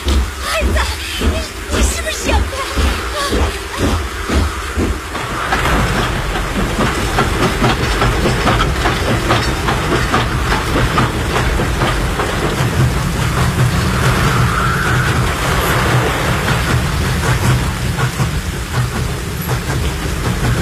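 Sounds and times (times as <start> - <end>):
train passing over rails: 0.0 - 20.6.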